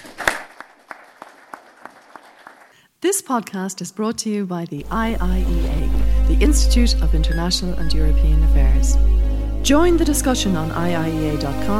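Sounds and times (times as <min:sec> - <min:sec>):
audience applause after a talk: 0:00.5 - 0:02.7
speech: 0:03.0 - 0:11.7.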